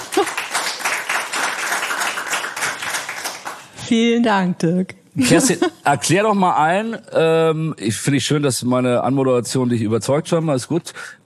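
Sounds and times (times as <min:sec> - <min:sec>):
audience applause: 0:00.0 - 0:03.8
speech: 0:03.9 - 0:11.2.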